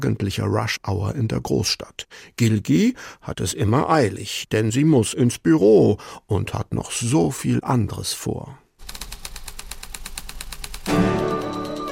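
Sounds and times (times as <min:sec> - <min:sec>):
speech: 0:00.0 - 0:08.6
typewriter typing: 0:08.8 - 0:11.9.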